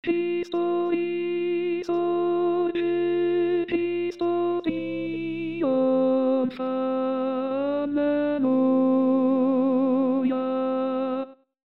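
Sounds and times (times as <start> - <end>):
contralto voices singing: 0.0 - 11.4.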